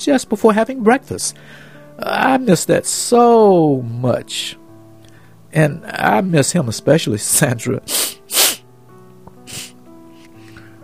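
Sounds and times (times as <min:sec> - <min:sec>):
speech: 0:00.0 - 0:04.6, 0:05.5 - 0:08.4
sniffling: 0:07.9 - 0:08.6, 0:09.4 - 0:10.7.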